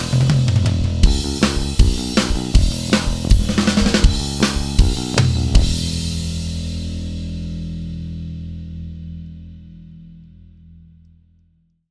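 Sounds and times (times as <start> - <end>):
punk guitar power chords: 0.0 - 9.4.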